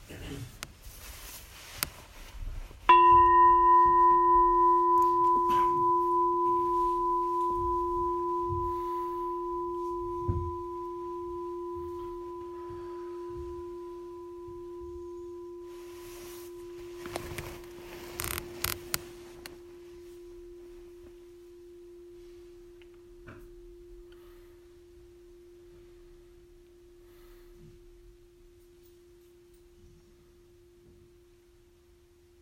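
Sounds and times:
meditation bell ringing: 2.9s - 24.6s.

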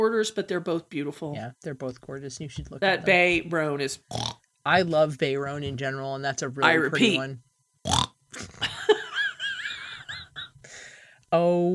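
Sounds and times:
speech: 0.0s - 8.6s, 11.3s - 11.7s
person snorting: 7.9s - 8.6s.

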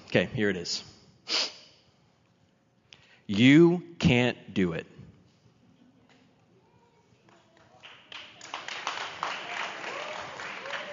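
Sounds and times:
speech: 0.1s - 1.5s, 3.3s - 4.9s
applause from a modest crowd: 7.8s - 10.9s.

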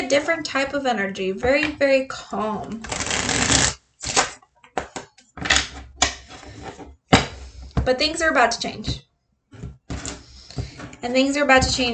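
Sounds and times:
speech: 0.0s - 3.7s, 7.9s - 9.1s, 11.0s - 11.9s
tarot cards being shuffled during a card reading: 2.8s - 5.1s.

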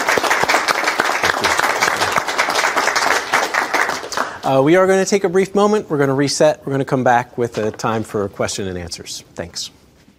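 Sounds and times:
audience applause: 0.0s - 4.5s
speech: 4.5s - 9.8s.

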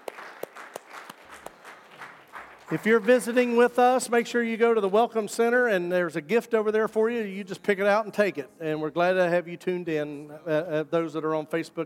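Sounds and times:
audience hand clapping: 0.0s - 3.6s
speech: 2.7s - 11.8s.

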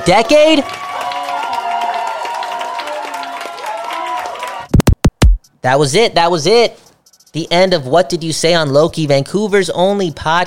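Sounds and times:
speech: 0.0s - 0.9s, 5.6s - 10.4s
audience applause: 0.0s - 4.7s.

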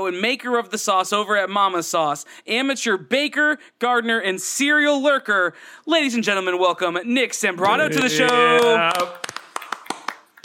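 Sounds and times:
speech: 0.0s - 9.2s
hand clapping: 7.6s - 10.4s.

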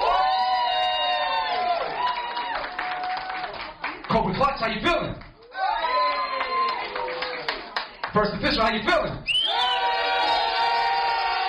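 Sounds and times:
audience cheering: 0.0s - 3.7s, 5.4s - 7.8s, 9.3s - 11.4s
audience applause: 0.0s - 4.4s, 5.4s - 8.1s, 9.5s - 11.4s
speech: 4.2s - 5.3s, 8.2s - 9.3s.

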